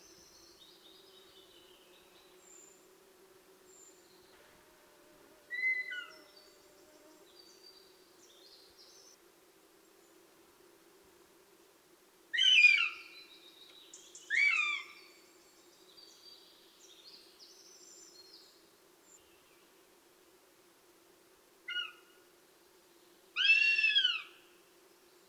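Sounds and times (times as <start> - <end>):
goshawk begging call: 12.4 - 13.0, 14.3 - 14.9, 23.4 - 24.3.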